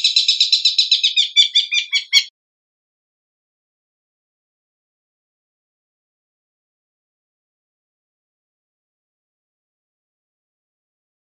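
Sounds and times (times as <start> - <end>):
long-tailed shrike song: 0.0 - 2.3.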